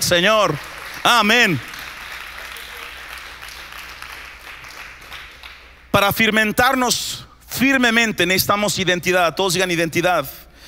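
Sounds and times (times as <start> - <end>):
speech: 0.1 - 1.7, 6.0 - 10.4
audience applause: 0.4 - 5.8.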